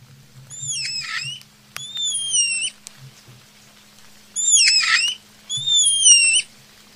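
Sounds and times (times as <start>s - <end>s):
spider monkey calling: 0.4s - 3.1s, 4.0s - 6.6s.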